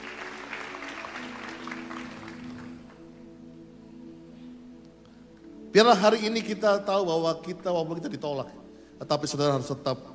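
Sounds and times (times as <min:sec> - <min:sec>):
audience applause: 0:00.0 - 0:03.0
speech: 0:05.8 - 0:10.1.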